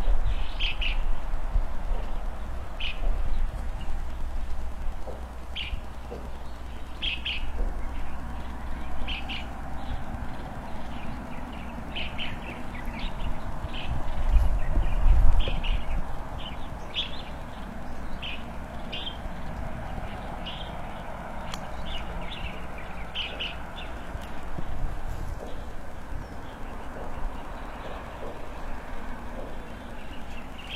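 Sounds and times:
birds chirping: 0.0 - 30.7.

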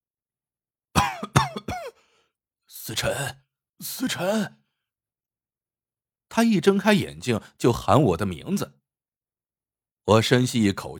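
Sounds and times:
violent coughing: 1.0 - 2.1
speech: 2.9 - 4.6, 6.4 - 8.8, 10.1 - 10.9.

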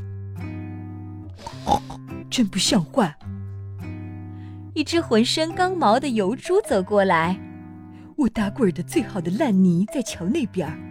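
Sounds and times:
hippo snoring: 1.4 - 2.1
speech: 2.4 - 3.3, 4.8 - 7.5, 8.2 - 10.9.

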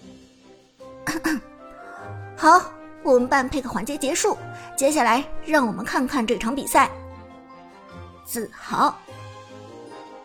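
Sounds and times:
commentator coughing: 1.0 - 1.5
speech: 2.4 - 7.0, 8.3 - 9.1.

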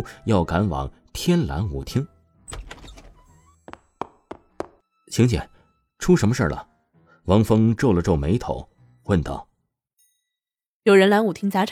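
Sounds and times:
speech: 0.0 - 2.1, 5.1 - 9.5, 10.8 - 11.7
bedroom door opening: 2.5 - 3.4.

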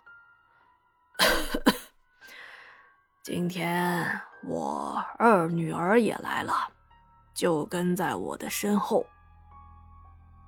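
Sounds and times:
old man coughing: 1.2 - 1.9
speech: 3.2 - 6.7, 7.4 - 9.2.

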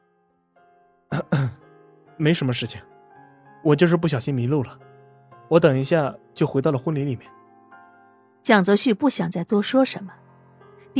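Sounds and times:
person coughing awkwardly: 1.1 - 1.6
speech: 2.2 - 2.9, 3.6 - 4.9, 5.5 - 7.4, 8.4 - 10.2.

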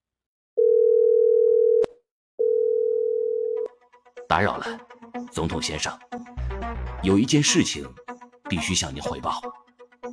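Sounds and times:
telephone dial tone: 0.6 - 3.7
speech: 4.3 - 9.6.

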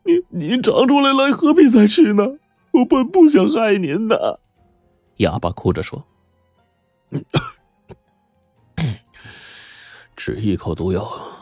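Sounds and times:
speech: 0.4 - 4.4, 5.2 - 6.1, 7.1 - 7.5, 10.2 - 11.3
coughing: 1.8 - 4.4, 7.1 - 8.0, 8.8 - 9.3.

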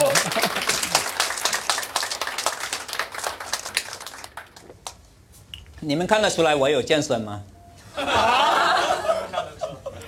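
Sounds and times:
laughter: 0.0 - 1.2, 7.9 - 10.0
audience applause: 0.0 - 4.7
speech: 5.8 - 8.4.

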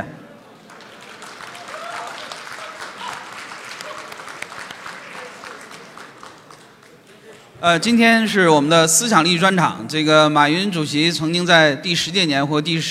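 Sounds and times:
faint crowd murmur: 0.0 - 7.6
audience applause: 0.4 - 7.6
speech: 7.6 - 12.8.

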